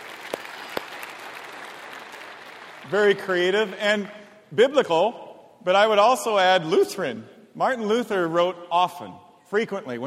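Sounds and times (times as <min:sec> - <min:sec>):
audience applause: 0:00.0 - 0:03.3
speech: 0:02.8 - 0:10.0.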